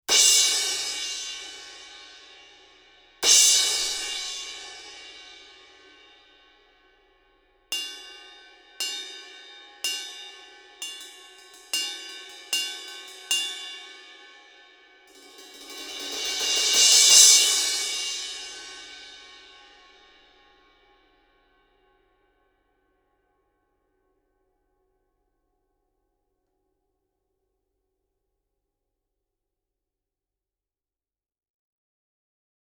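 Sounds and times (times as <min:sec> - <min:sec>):
crash cymbal: 0:00.1 - 0:06.8, 0:07.8 - 0:21.1.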